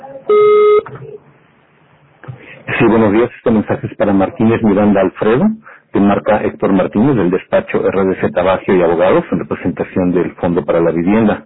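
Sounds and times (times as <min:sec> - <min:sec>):
voicemail recording tone beep: 0:00.3 - 0:00.9
speech: 0:02.9 - 0:11.4.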